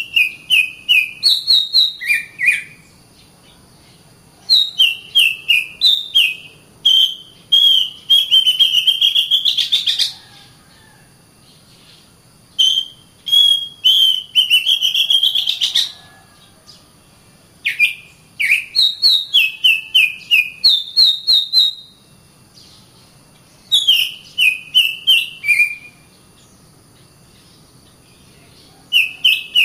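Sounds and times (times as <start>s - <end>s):
Oriental magpie-robin singing clear whistled notes: 0.0s - 3.0s, 4.5s - 10.1s, 12.6s - 16.0s, 17.7s - 22.0s, 23.6s - 26.6s, 28.8s - 29.6s.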